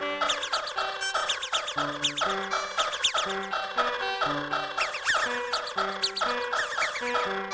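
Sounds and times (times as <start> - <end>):
cartoon sound: 0.2 - 3.5, 4.5 - 7.4.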